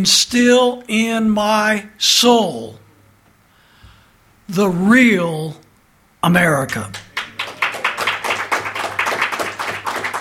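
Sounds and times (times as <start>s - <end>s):
speech: 0.0s - 2.8s, 4.5s - 5.6s, 6.2s - 7.0s
sparse audience clapping: 6.9s - 10.1s.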